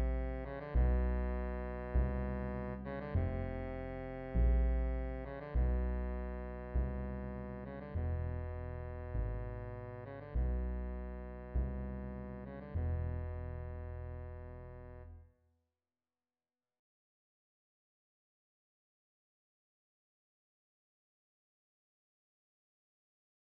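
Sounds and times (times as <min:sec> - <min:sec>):
string bass: 0:00.0 - 0:15.2.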